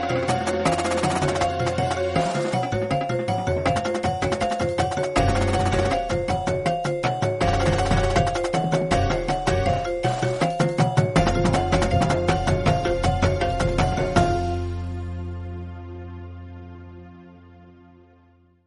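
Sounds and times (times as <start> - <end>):
drumline percussion: 0.0 - 14.4.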